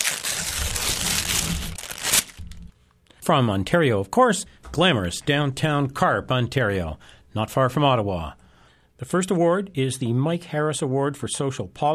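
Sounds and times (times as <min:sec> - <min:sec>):
paper crinkling as an envelope is opened to announce an award: 0:00.0 - 0:02.7
speech: 0:03.2 - 0:08.4, 0:09.0 - 0:11.9.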